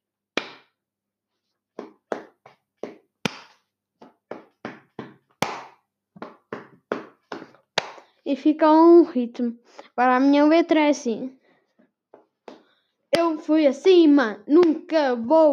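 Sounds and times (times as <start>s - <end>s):
hands clapping: 0.4s - 0.7s, 1.8s - 8.1s
hand slapping leg: 0.4s - 0.8s, 1.8s - 8.2s, 12.1s - 13.4s, 14.5s - 14.8s
speech: 8.3s - 11.4s, 13.3s - 15.5s.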